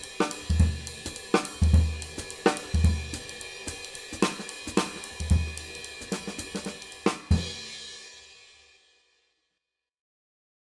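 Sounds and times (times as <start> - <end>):
16 Sabian cymbal: 0.0 - 9.0.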